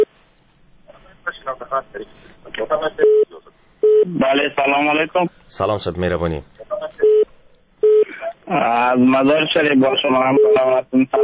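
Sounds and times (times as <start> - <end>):
speech: 1.5 - 7.0, 8.5 - 11.2
telephone tone on a listener's call-in line: 3.0 - 4.1.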